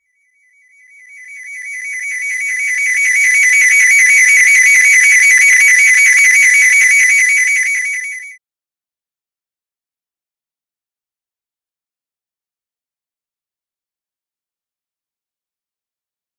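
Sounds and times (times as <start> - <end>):
short futuristic warning sound: 1.3 - 8.4.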